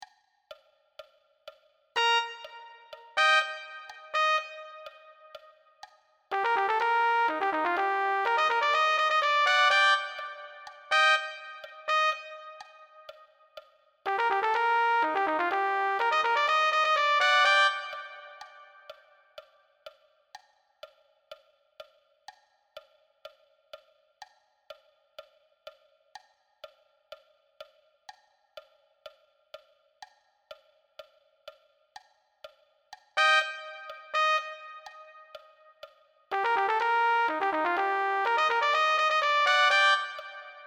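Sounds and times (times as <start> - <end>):
trumpet: 2.0 - 5.6, 6.3 - 13.3, 14.1 - 19.1, 33.2 - 40.6.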